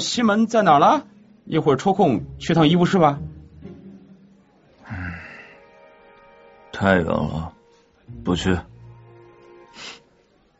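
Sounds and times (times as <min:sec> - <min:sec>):
speech: 0:00.0 - 0:03.3, 0:06.8 - 0:08.7
sniff through a stuffy nose: 0:09.7 - 0:10.1.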